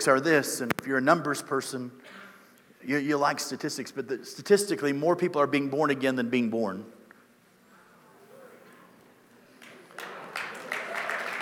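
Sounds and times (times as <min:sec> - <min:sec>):
speech: 0:00.0 - 0:02.2, 0:02.8 - 0:07.0
light golf clap applause from a small crowd: 0:09.5 - 0:11.3.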